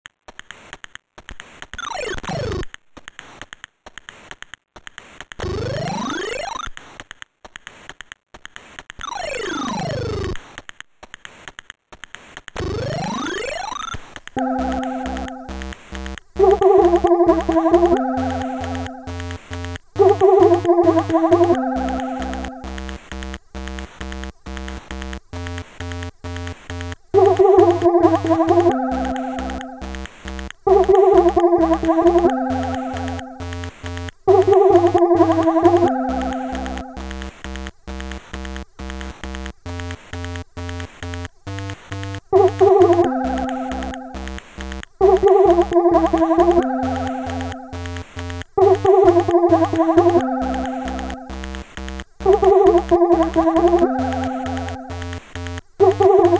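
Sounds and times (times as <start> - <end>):
chiptune music: 14.4 - 15.8, 16.4 - 22.9, 27.2 - 37.2, 42.4 - 44.4, 45.0 - 48.0, 48.6 - 51.5, 52.3 - 55.2, 55.8 - 56.3.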